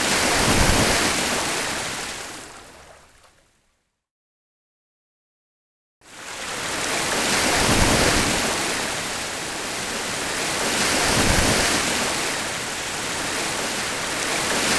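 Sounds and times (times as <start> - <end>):
ocean wave: 0.0 - 3.2, 6.1 - 14.7.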